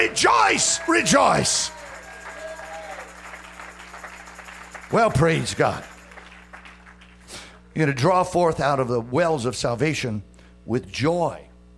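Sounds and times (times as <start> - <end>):
speech: 0.0 - 1.8, 4.9 - 5.9, 7.8 - 11.5
congregation clapping hands during a church service: 0.0 - 7.6
steady low electrical hum: 0.0 - 11.7.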